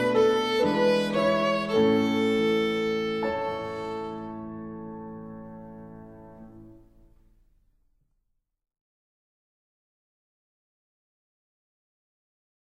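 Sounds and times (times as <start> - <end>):
violin slow practice of a folk tune: 0.0 - 5.2.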